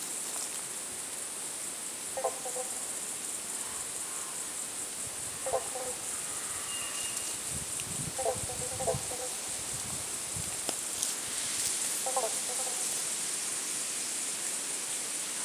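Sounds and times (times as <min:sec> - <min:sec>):
frogs: 0:00.0 - 0:15.4
birds: 0:03.5 - 0:09.4.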